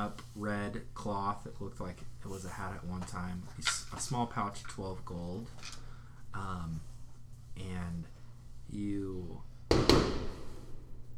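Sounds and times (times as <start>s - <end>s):
speech: 0.0s - 6.9s, 7.6s - 10.3s
fireworks going off at a neighbor's: 9.8s - 10.9s.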